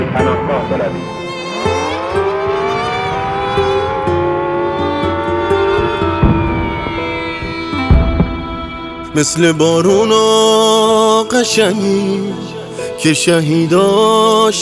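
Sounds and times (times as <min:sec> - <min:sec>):
speech: 0:00.2 - 0:01.2, 0:09.2 - 0:14.6
air raid warning siren: 0:01.0 - 0:09.9.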